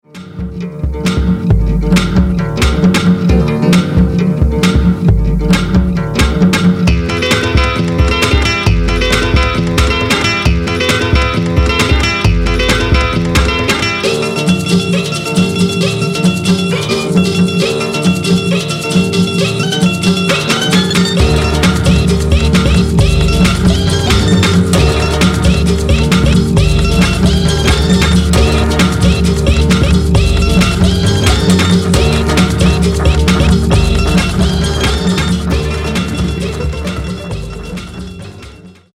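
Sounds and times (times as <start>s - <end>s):
acoustic guitar mashup: 0.0s - 38.9s.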